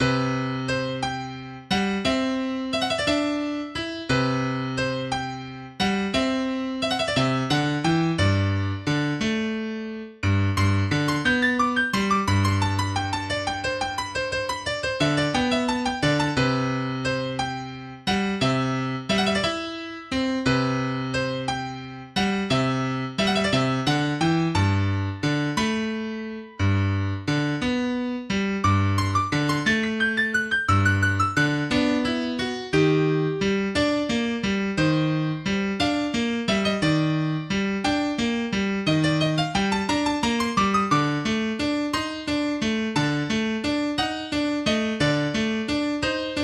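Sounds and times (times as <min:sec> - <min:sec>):
piano: 0:00.0 - 0:46.4.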